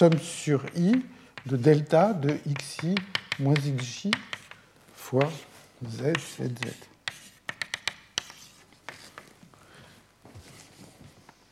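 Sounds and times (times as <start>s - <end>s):
speech: 0.0s - 4.4s, 5.1s - 6.9s
writing an equation on a board: 0.0s - 4.6s, 5.2s - 9.3s.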